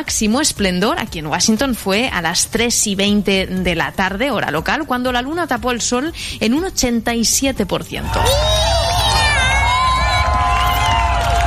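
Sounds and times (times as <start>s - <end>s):
speech: 0.0s - 8.9s
crowd cheering at a partial solar eclipse in Washington: 8.0s - 11.4s.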